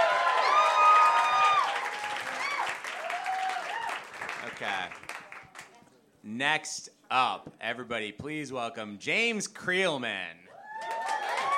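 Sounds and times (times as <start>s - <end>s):
voiced whoops: 0.0s - 4.0s, 10.5s - 11.5s
audience applause for a contestant at a live competition show: 0.0s - 5.7s, 10.7s - 11.5s
speech: 6.2s - 10.9s.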